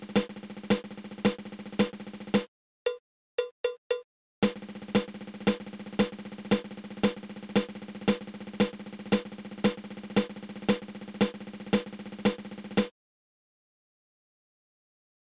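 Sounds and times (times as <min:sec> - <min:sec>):
seven stroke drum roll: 0:00.0 - 0:02.5, 0:04.4 - 0:12.9.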